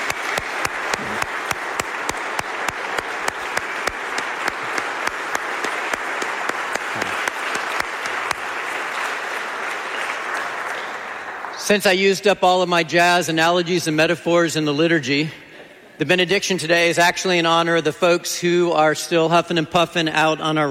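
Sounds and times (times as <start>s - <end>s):
audience applauding the music ensemble: 0.0s - 11.9s
speech: 11.7s - 15.4s, 16.0s - 20.7s.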